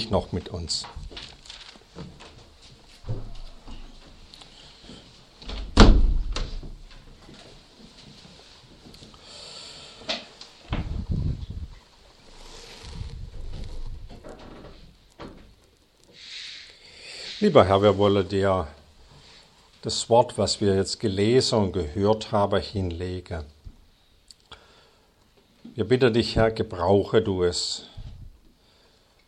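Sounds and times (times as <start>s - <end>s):
speech: 0.0s - 1.3s, 17.4s - 18.8s, 19.8s - 23.6s, 25.8s - 27.9s
windows being shut: 3.0s - 4.0s, 5.4s - 6.8s, 10.7s - 11.2s.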